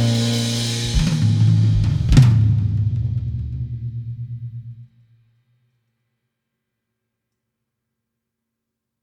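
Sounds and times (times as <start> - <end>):
jazz trio playing: 0.0 - 2.9.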